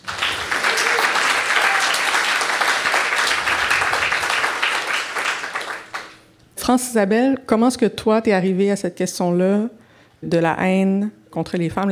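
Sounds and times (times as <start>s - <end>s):
audience applause: 0.0s - 6.2s
speech: 6.7s - 11.9s.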